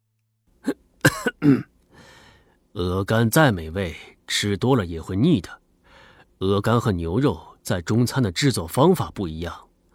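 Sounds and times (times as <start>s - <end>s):
man coughing in embarrassment: 0.6s - 1.8s
speech: 1.4s - 1.7s, 2.8s - 5.6s, 6.4s - 9.7s.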